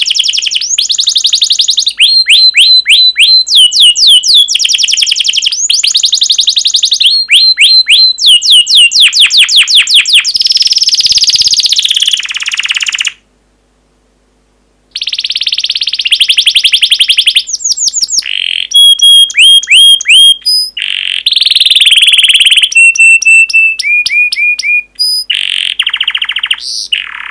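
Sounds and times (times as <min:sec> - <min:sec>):
canary song: 0:00.0 - 0:13.2, 0:14.9 - 0:27.2.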